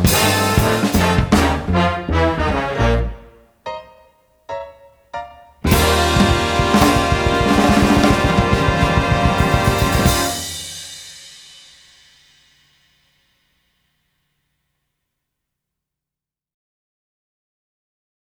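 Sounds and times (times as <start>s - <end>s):
blues music: 0.0s - 10.8s.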